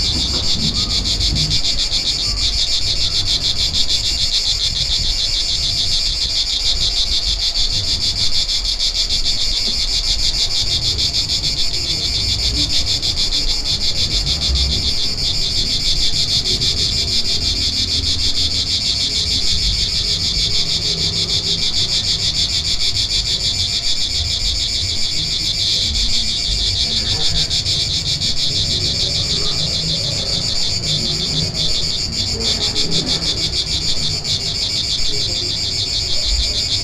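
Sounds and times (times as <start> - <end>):
cicadas: 0.0 - 36.8.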